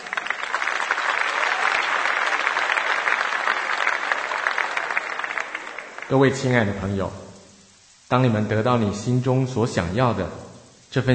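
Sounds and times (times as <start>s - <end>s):
audience applause: 0.0s - 6.8s
speech: 6.1s - 7.2s, 8.1s - 11.1s.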